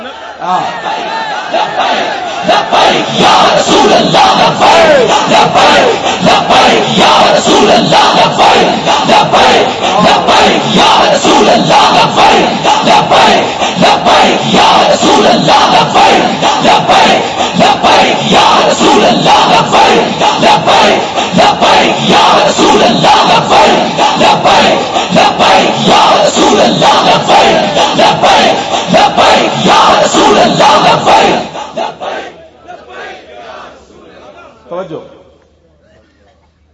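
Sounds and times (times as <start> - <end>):
large crowd chanting slogans: 0.0 - 34.6
speech: 0.4 - 32.2, 34.7 - 35.2.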